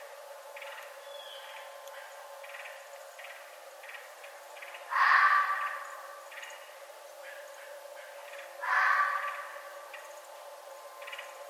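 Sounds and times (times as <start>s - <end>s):
steady hum: 0.0s - 11.4s
red fox crying: 4.9s - 6.0s, 8.6s - 9.7s.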